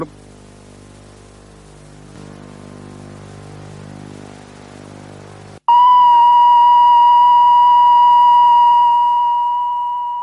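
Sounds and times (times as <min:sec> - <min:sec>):
steady electronic beep tone: 0:05.7 - 0:10.2.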